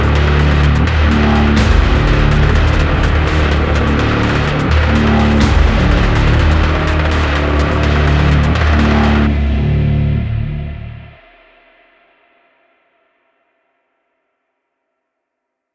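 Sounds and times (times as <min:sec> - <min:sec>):
main ambience: 0:00.0 - 0:11.0.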